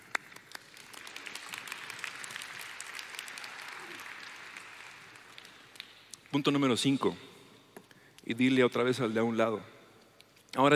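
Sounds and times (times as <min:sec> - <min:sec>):
audience applause: 0:00.0 - 0:05.9
speech: 0:06.3 - 0:07.3, 0:08.3 - 0:09.7, 0:10.5 - 0:10.7.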